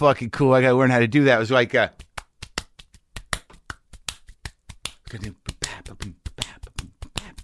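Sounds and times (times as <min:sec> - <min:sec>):
speech: 0:00.0 - 0:02.0, 0:05.1 - 0:05.4
hands clapping a swing beat: 0:01.9 - 0:07.4.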